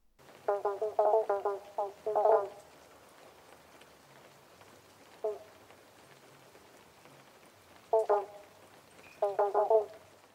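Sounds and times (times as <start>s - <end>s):
eastern banjo frog calling: 0.5s - 2.7s, 5.2s - 5.6s, 7.9s - 8.5s, 9.1s - 10.0s.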